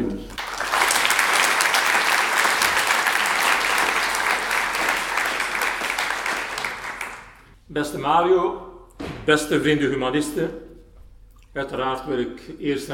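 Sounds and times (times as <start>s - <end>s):
audience applause: 0.4s - 7.5s
speech: 7.8s - 8.7s, 9.3s - 10.7s, 11.6s - 12.9s.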